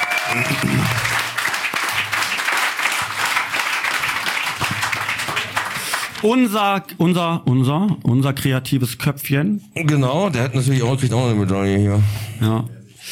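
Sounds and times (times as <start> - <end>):
crowd applauding: 0.0 - 6.4
speech: 0.3 - 1.1, 6.2 - 13.0.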